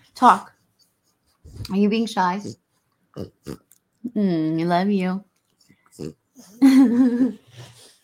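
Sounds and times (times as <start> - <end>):
speech: 0.2 - 0.5, 1.7 - 2.6, 3.2 - 5.3, 6.0 - 7.8
dog snorting and grunting like a pig: 2.2 - 3.7, 5.9 - 6.6.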